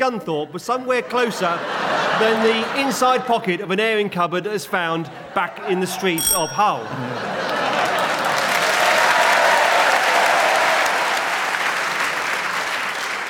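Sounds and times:
speech: 0:00.0 - 0:07.3
laughter: 0:01.1 - 0:03.3, 0:05.4 - 0:08.5
spontaneous round of applause: 0:07.3 - 0:13.2.

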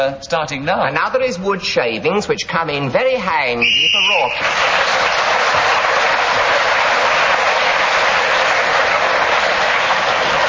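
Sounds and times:
speech: 0:00.0 - 0:05.3
studio audience cheering: 0:03.6 - 0:10.4.

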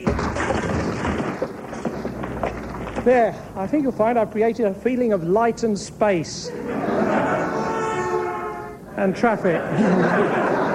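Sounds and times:
sledgehammer pounding through a wall: 0:00.0 - 0:03.2
crumbling masonry and falling rubble: 0:00.0 - 0:04.0
speech: 0:03.0 - 0:06.8, 0:09.0 - 0:10.6
laughter: 0:06.4 - 0:10.7.

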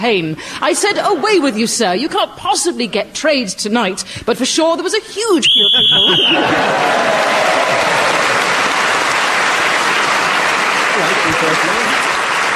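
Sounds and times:
speech: 0:00.0 - 0:08.0, 0:11.0 - 0:12.1
laughter: 0:00.6 - 0:02.1, 0:05.4 - 0:08.8, 0:10.9 - 0:12.0
game show whistle ending the round: 0:05.4 - 0:06.5
audience applause: 0:05.6 - 0:12.5.

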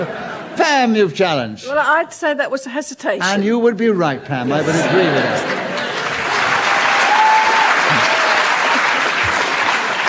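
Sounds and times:
laughter: 0:00.0 - 0:01.0, 0:04.3 - 0:07.0, 0:07.6 - 0:10.0
speech: 0:00.0 - 0:05.7
studio audience applause: 0:04.8 - 0:10.0.

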